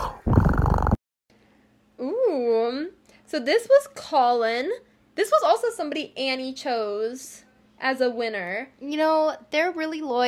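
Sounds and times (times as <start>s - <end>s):
person imitating a cat with a rough purr-like growl: 0.0s - 1.0s
speech: 3.3s - 10.2s.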